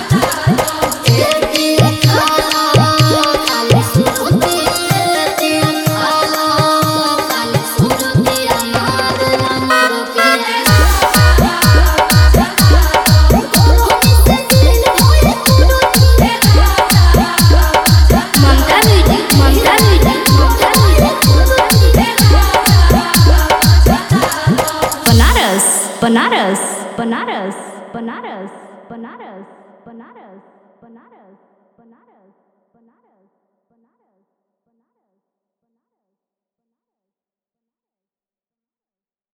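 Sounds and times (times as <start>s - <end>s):
Bhojpuri DJ remix song: 0.0s - 26.5s.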